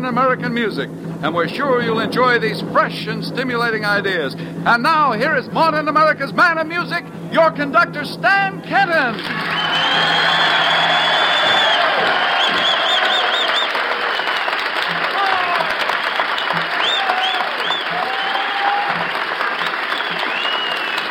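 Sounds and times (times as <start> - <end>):
speech: 0.0 - 10.9
audience applause in the Carousel Ballroom: 9.1 - 21.0
audience whistles and whoops: 9.3 - 21.0.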